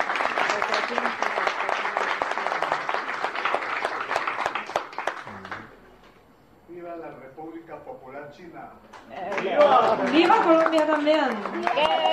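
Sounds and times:
audience applause: 0.0s - 5.8s, 9.3s - 12.1s
speech: 8.3s - 12.1s.

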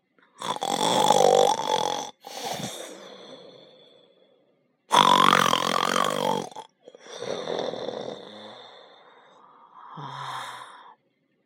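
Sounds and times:
loud snoring: 0.4s - 3.9s, 4.9s - 10.2s.

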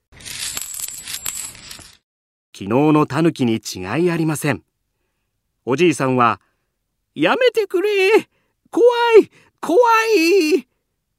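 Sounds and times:
gold coins dropping: 0.2s - 2.0s
speech: 2.6s - 4.7s, 5.6s - 6.5s, 7.2s - 10.7s.

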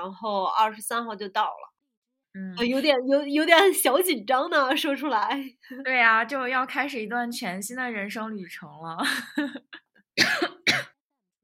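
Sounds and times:
speech: 0.0s - 1.7s, 2.3s - 10.6s
person coughing: 10.2s - 11.0s.

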